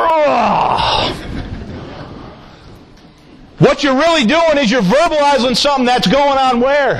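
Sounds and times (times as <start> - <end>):
person imitating a groan on waking in the morning: 0.0 - 1.2
speech: 3.9 - 6.9.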